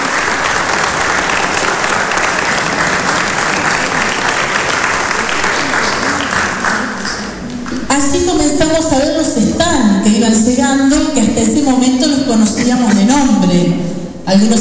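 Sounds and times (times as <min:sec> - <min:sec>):
audience applause: 0:00.0 - 0:07.9
speech: 0:08.6 - 0:14.5.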